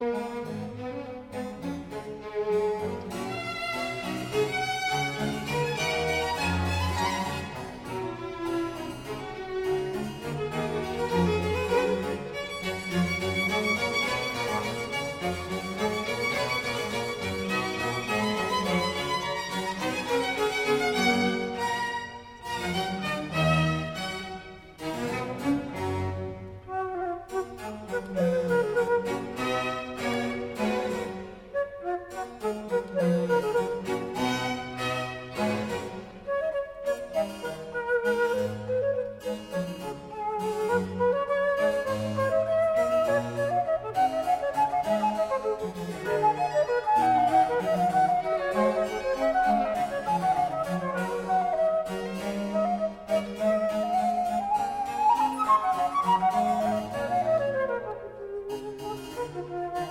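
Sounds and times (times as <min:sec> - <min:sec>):
strings: 0:00.0 - 0:59.9
transverse flute: 0:00.0 - 0:59.9
basso continuo: 0:01.3 - 0:59.9.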